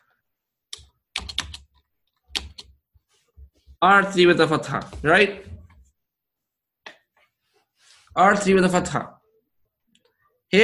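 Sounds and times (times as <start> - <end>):
typing on a computer keyboard: 0.8 - 2.7
speech: 3.8 - 5.6, 8.2 - 9.2.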